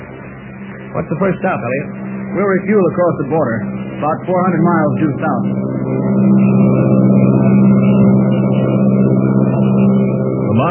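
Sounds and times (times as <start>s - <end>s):
airplane engine droning in flight: 0.0s - 10.6s
speech: 0.9s - 7.8s.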